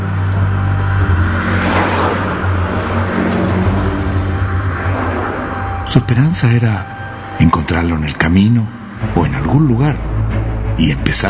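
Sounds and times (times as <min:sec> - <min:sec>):
car engine accelerating as the car drives off toward La Serena: 0:00.0 - 0:07.4
speech: 0:06.0 - 0:10.1, 0:10.8 - 0:11.2.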